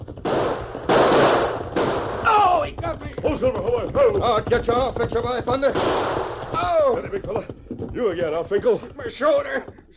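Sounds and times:
gunfire: 0:00.1 - 0:02.7, 0:05.6 - 0:07.0
speech: 0:03.4 - 0:09.9.

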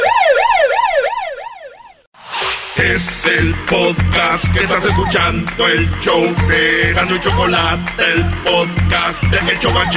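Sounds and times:
police siren warbling: 0:00.0 - 0:02.1
burst of harsh noise: 0:02.2 - 0:03.3
speech: 0:02.8 - 0:09.9.

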